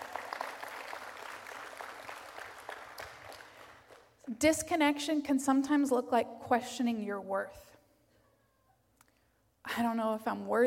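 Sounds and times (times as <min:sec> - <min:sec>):
audience clapping: 0:00.0 - 0:04.2
speech: 0:04.3 - 0:07.7, 0:09.8 - 0:10.6.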